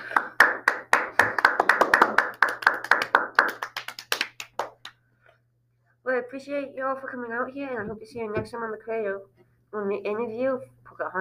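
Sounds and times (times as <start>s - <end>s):
round of applause: 0.0s - 4.9s
speech: 6.3s - 11.1s.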